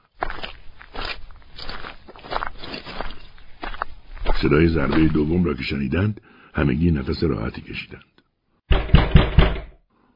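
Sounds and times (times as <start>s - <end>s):
patrol boots crunching snow and ice: 0.0s - 5.4s
speech: 4.4s - 8.1s.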